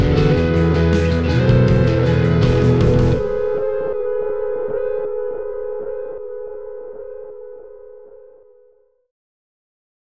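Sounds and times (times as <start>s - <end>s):
tiny major metal music: 0.0s - 4.9s.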